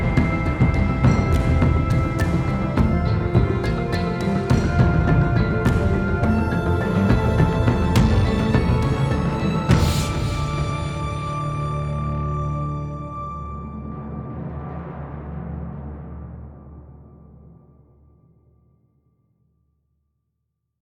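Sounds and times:
action music loop: 0:00.0 - 0:12.4.

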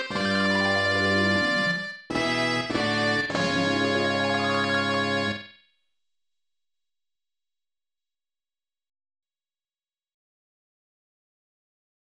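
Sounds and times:
news jingle: 0:00.2 - 0:05.5.

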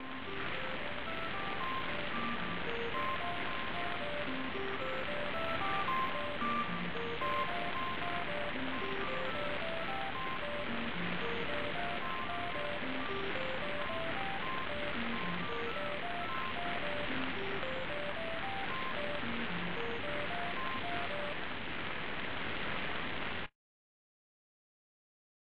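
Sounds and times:
gentle falling rain: 0:00.0 - 0:23.5.

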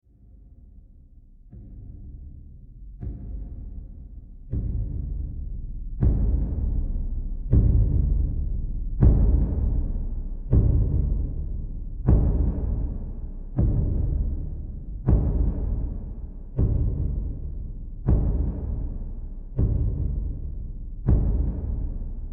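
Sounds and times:
ceremonial drums: 0:04.5 - 0:22.3.

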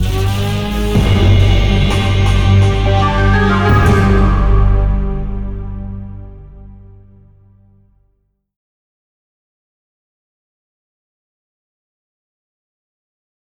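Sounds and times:
game over jingle: 0:00.9 - 0:07.2.

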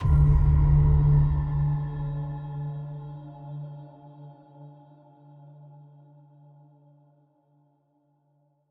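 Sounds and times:
ending impact sound: 0:00.0 - 0:02.4.

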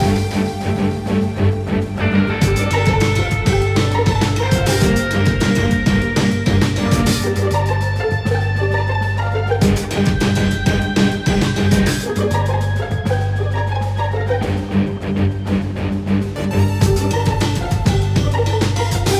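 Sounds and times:
200bpm music loop: 0:00.0 - 0:19.1.

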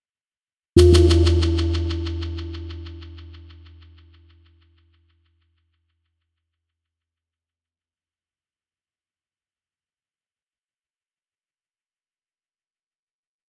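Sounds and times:
percussion: 0:00.8 - 0:04.3.

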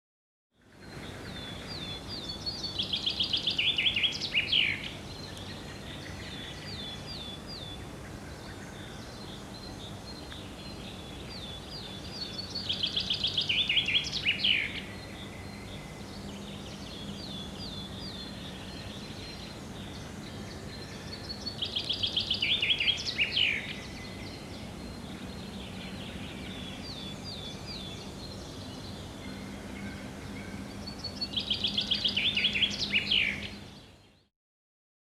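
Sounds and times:
birdsong: 0:00.6 - 0:34.3.

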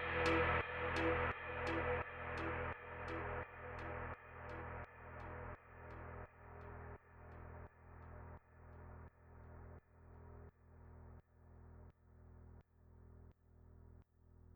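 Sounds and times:
synths: 0:00.0 - 0:06.2.

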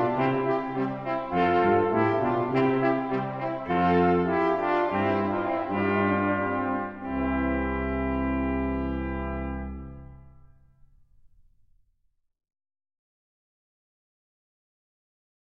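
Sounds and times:
brass quintet horns echoing through a castle: 0:00.0 - 0:10.7.

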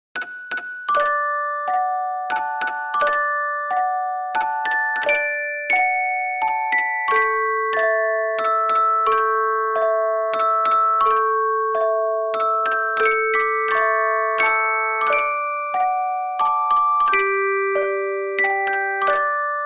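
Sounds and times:
lullaby melody: 0:00.2 - 0:19.6.

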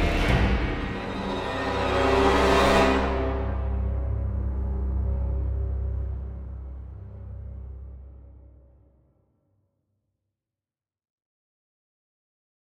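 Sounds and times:
high-intensity action music: 0:00.0 - 0:08.6.

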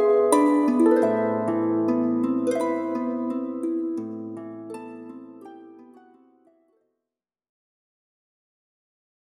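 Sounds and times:
wind harp: 0:00.0 - 0:06.3.

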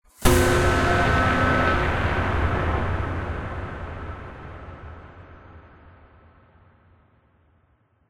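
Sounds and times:
short musical sting: 0:00.1 - 0:04.9.

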